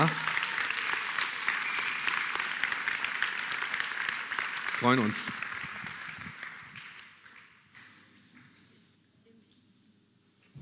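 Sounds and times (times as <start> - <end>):
speech: 0.0 - 0.2, 4.8 - 5.4
audience applause: 0.0 - 8.5.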